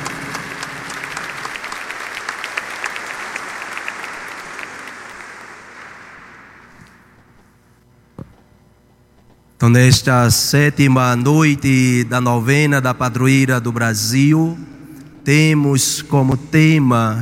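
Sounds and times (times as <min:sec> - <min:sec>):
applause: 0:00.0 - 0:07.3
speech: 0:09.6 - 0:17.2.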